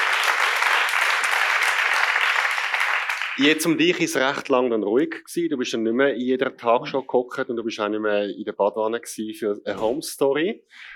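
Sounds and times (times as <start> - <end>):
audience applause: 0.0 - 4.1
speech: 3.4 - 10.9.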